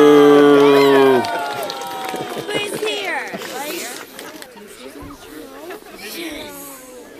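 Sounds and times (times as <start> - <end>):
crowd booing a groundhog prediction: 0.0 - 3.7
murmur of voices: 0.0 - 7.1.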